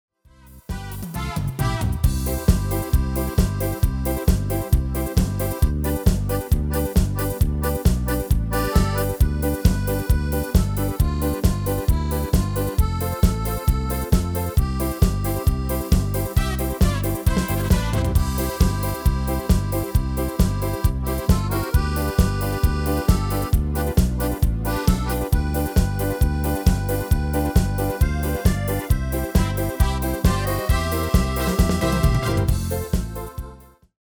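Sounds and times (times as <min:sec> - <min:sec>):
MIDI music: 0:00.5 - 0:33.8.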